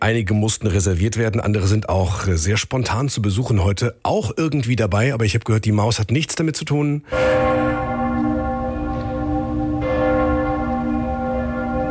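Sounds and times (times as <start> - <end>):
speech: 0.0 - 7.7
church bells of Cologne Cathedral ringing: 7.1 - 11.8.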